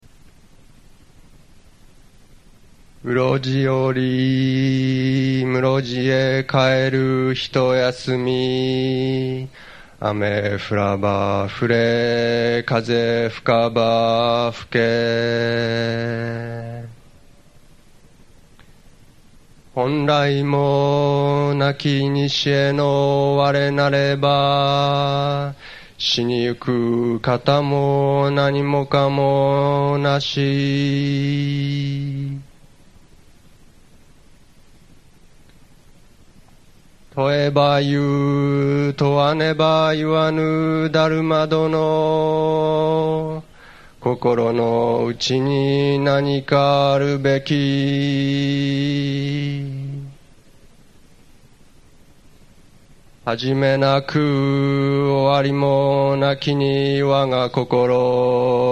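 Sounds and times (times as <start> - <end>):
chanting: 3.0 - 17.0, 19.8 - 32.5, 37.2 - 50.2, 53.2 - 58.7.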